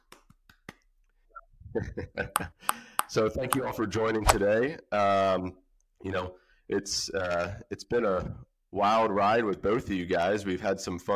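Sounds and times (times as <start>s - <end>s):
quiet polite golf clap: 0.0s - 0.9s
speech: 1.8s - 11.1s.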